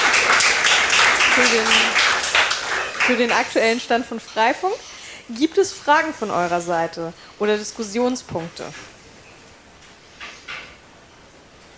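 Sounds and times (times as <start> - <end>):
audience applause after a conference talk about community networking: 0.0 - 3.8
speech: 1.4 - 1.9, 3.1 - 8.9.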